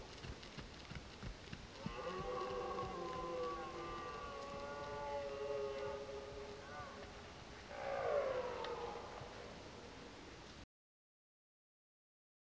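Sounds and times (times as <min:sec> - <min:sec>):
red deer roaring: 0:01.8 - 0:10.2.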